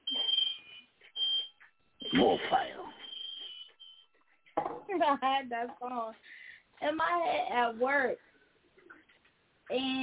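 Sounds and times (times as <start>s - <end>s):
smoke alarm beeping: 0.0s - 4.6s
speech: 2.1s - 2.8s, 5.0s - 8.3s, 9.7s - 10.0s.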